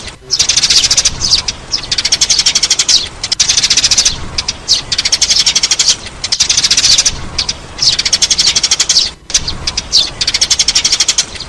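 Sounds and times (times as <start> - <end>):
sparrow chirping: 0.0 - 11.4.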